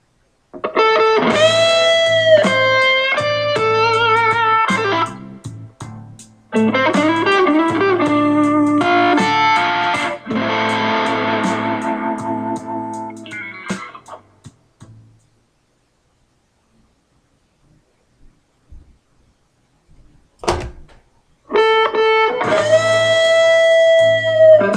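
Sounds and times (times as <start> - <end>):
minor blues lick: 0.5 - 15.4, 20.4 - 24.7.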